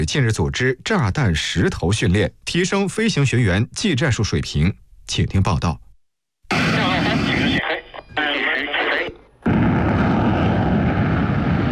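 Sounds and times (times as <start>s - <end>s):
speech: 0.0s - 5.8s
crackly radio voices at an air force flight academy: 6.5s - 9.4s
third-generation fighter jet engine roar taking off: 9.5s - 11.7s.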